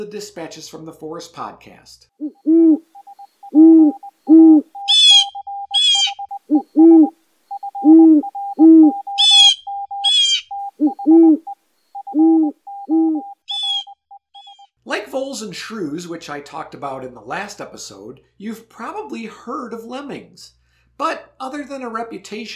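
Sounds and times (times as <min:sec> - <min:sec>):
speech: 0:00.0 - 0:02.8, 0:15.4 - 0:22.5
snowy owl hooting: 0:02.2 - 0:14.7.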